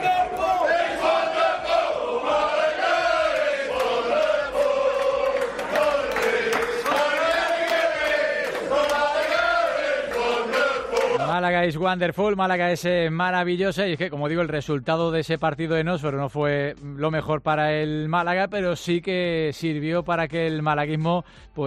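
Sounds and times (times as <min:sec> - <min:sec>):
football fans chanting a sung melody in unison: 0:00.0 - 0:11.3
speech: 0:11.8 - 0:21.6.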